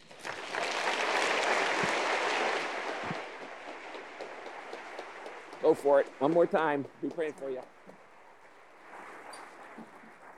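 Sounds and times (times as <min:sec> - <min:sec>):
audience applauding to welcome a guest speaker: 0:00.0 - 0:08.0
speech: 0:05.7 - 0:07.8.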